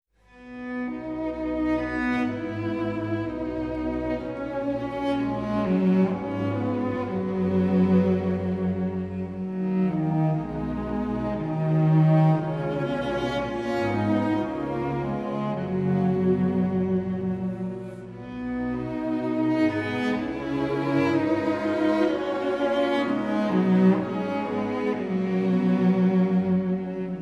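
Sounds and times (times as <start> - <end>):
andante cantabile cello piece: 0.2 - 27.2.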